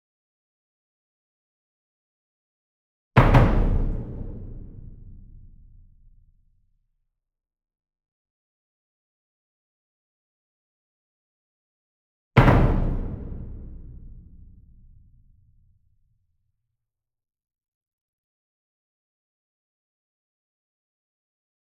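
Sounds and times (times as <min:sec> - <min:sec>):
single 66 inch drum struck with double soft beater, medium: 0:03.2 - 0:06.2, 0:12.4 - 0:15.4.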